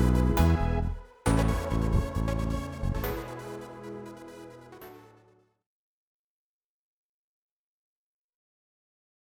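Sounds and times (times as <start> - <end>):
I V IV V dance music: 0.0 - 5.2.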